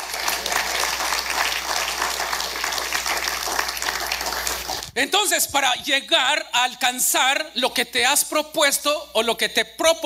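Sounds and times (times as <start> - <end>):
audience applause: 0.0 - 4.9
speech: 5.0 - 10.0.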